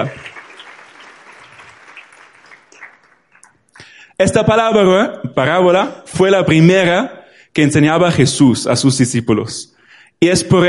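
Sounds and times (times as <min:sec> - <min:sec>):
speech: 0:00.0 - 0:00.3, 0:04.2 - 0:10.6
audience applauding: 0:00.0 - 0:03.9.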